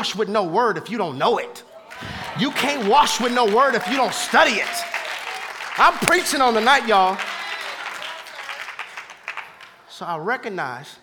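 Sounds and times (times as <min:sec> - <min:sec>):
speech: 0:00.0 - 0:04.9, 0:05.8 - 0:07.3, 0:10.0 - 0:11.0
audience clapping: 0:01.8 - 0:09.9.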